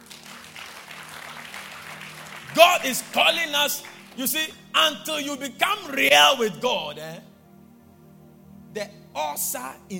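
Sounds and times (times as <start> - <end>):
audience clapping: 0.0 - 4.6
speech: 2.5 - 7.3, 8.7 - 9.9.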